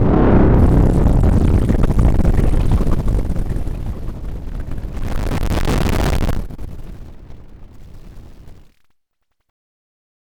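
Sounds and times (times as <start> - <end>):
noise with delay effect: 0.0 - 8.9.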